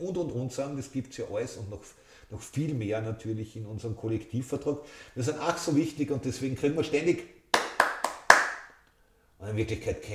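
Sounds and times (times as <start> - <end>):
speech: 0.0 - 7.4, 9.4 - 10.1
slow sharp hand claps: 7.5 - 8.9.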